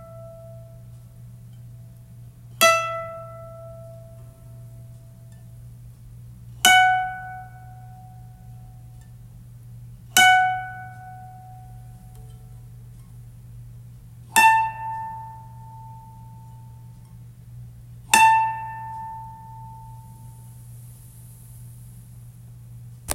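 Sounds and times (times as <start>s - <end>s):
koto being tuned: 2.6s - 5.6s, 6.6s - 9.2s, 10.1s - 13.1s, 14.3s - 17.1s, 18.1s - 20.6s.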